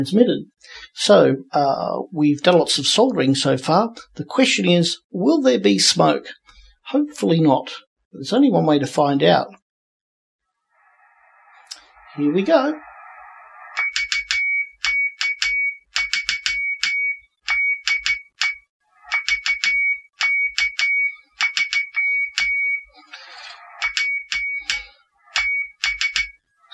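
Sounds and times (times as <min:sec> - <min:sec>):
speech: 0:00.0 - 0:09.6, 0:12.2 - 0:12.9
Morse code call sign transmission: 0:13.8 - 0:26.4.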